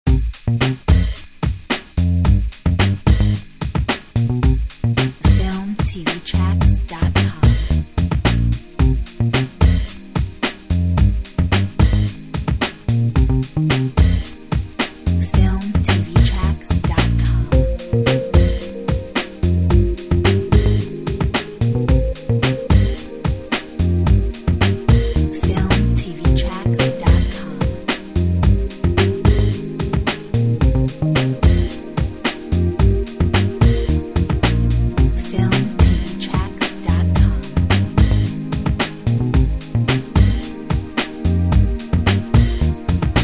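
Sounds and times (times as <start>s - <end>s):
funk music: 0.1s - 43.2s.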